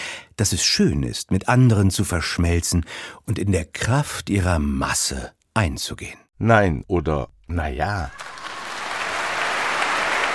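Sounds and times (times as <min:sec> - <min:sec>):
speech: 0:00.4 - 0:08.4
crowd applause after a concert or stage performance: 0:08.1 - 0:10.3.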